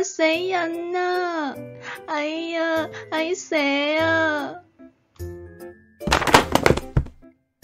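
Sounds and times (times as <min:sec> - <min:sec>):
speech: 0:00.2 - 0:04.6
shelf of snacks crashing over: 0:06.1 - 0:07.2.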